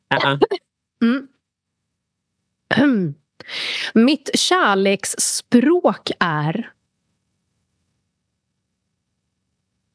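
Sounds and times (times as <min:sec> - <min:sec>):
speech: 0:00.1 - 0:00.6, 0:04.0 - 0:06.8
person coughing: 0:02.7 - 0:03.1.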